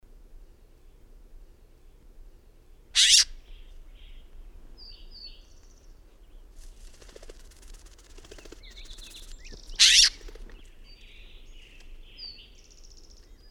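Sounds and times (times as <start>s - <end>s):
bird song chorus of high chirps, whistles and short trills: 3.0s - 4.2s, 6.8s - 13.4s.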